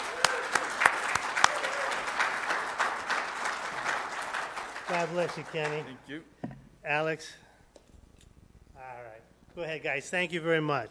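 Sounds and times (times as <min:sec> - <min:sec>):
audience round of applause: 0:00.0 - 0:06.0
speech: 0:04.9 - 0:07.4, 0:09.6 - 0:10.8.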